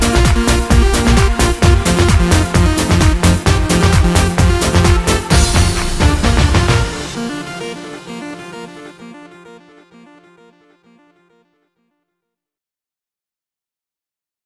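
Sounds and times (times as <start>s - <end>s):
stadium jingle: 0.0s - 9.9s.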